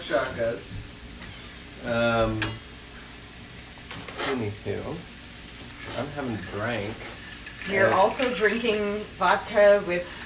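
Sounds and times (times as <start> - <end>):
dinner food sizzling in a pan: 0.0 - 10.2
speech: 0.1 - 0.9, 1.8 - 2.6, 4.3 - 5.1, 5.9 - 10.2.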